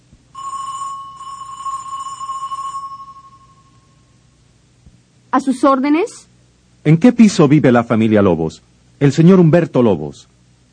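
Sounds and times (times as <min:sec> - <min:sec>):
electric doorbell ringing at building entrance: 0:00.3 - 0:04.2
speech: 0:05.4 - 0:10.3.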